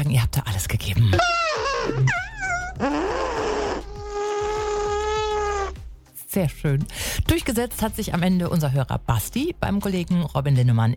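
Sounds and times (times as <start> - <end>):
speech: 0.0 - 3.3, 6.3 - 10.9
person imitating an elephant with their mouth: 1.1 - 5.8.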